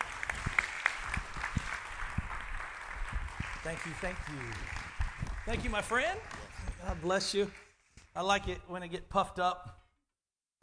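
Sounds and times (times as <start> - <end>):
audience applause: 0.0 - 7.8
speech: 3.6 - 4.8, 5.5 - 7.6, 8.2 - 9.8.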